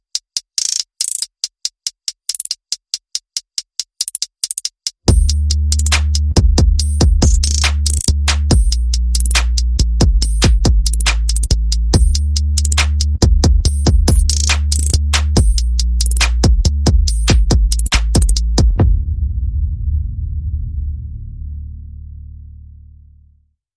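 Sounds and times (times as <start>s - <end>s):
percussion: 0.0s - 19.8s
bass: 5.1s - 23.6s.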